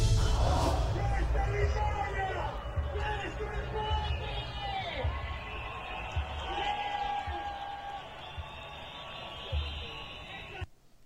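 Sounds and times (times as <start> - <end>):
massive crowd roaring in a stadium: 0.2 - 10.7
people shouting: 0.2 - 10.7
high whistles: 4.1 - 10.7.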